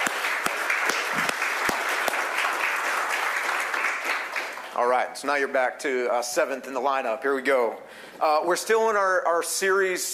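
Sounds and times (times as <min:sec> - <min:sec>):
audience round of applause: 0:00.0 - 0:05.0
speech: 0:04.8 - 0:10.1.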